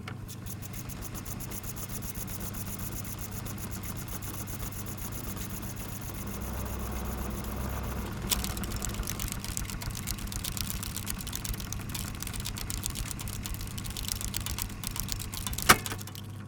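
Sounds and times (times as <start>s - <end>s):
tape machine fast forwarding: 0.2s - 16.3s.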